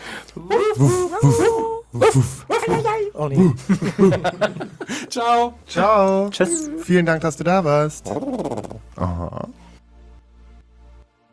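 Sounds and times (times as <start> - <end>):
people imitating dog noises to say goodbye: 0.3 - 3.6, 6.4 - 6.8, 8.0 - 9.6
laughter: 0.4 - 5.5
speech: 0.4 - 9.6.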